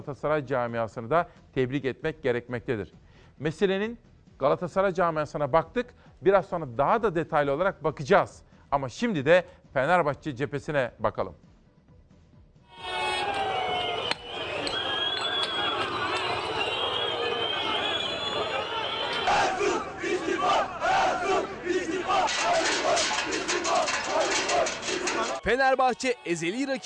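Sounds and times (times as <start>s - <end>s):
speech: 0.0s - 11.5s, 25.4s - 26.8s
large crowd of angry football fans shouting and chanting in protest: 12.8s - 26.8s.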